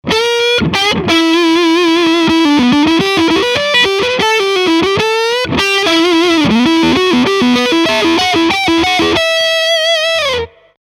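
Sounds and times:
lead melody line: 0.1 - 10.7.

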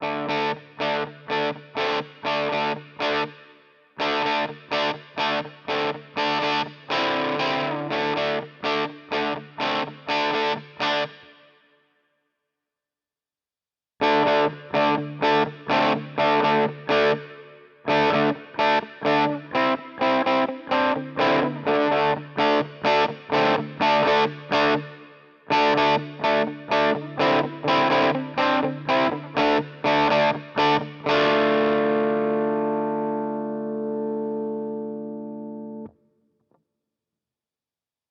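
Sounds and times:
electric guitar through Harley Benton DNAfx GiT recorded with MD441: 0.0 - 11.6, 14.0 - 36.0.

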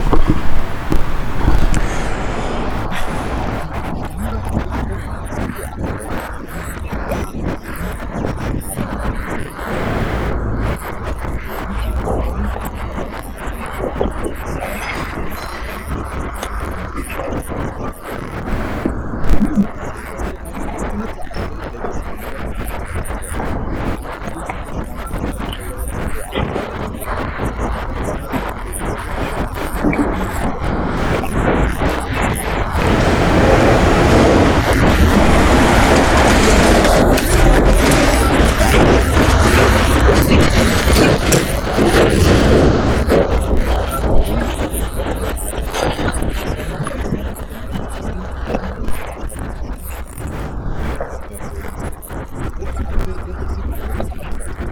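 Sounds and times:
person speaking: 0.0 - 18.9, 19.5 - 49.9
street noise: 0.0 - 53.9.

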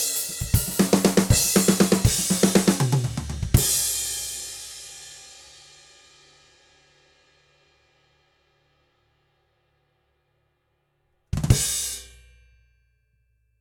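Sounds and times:
groove music: 0.0 - 4.0.

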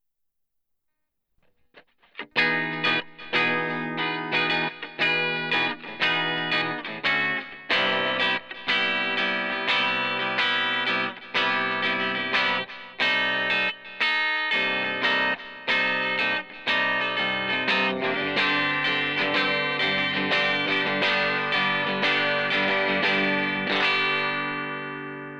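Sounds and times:
clean electric guitar through virtual amp with medium compression: 2.0 - 25.3.

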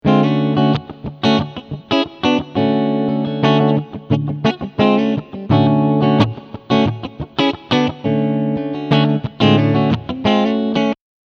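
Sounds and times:
clean guitar strumming on both pickups: 0.0 - 11.0.

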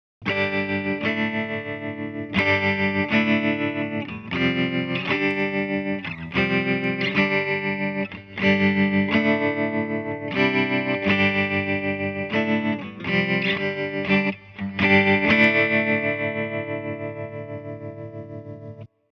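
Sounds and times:
clean channel tremolo guitar: 0.2 - 19.0.

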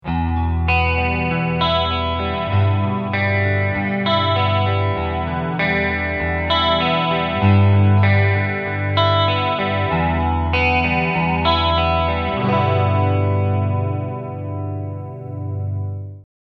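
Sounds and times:
clean guitar picking: 0.0 - 16.2.

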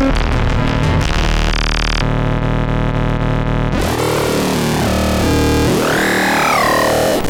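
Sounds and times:
Moog DFAM analog drum synthesizer: 0.0 - 7.2.

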